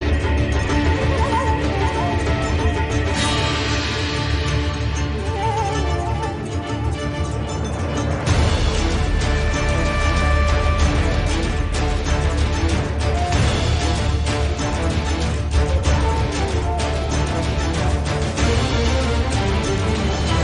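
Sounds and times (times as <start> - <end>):
music: 0.0 - 20.4.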